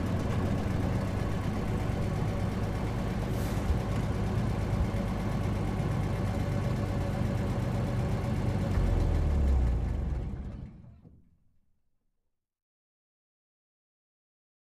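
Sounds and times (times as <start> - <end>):
2.5 T truck engine running at medium, heard from interior: 0.0 - 11.1.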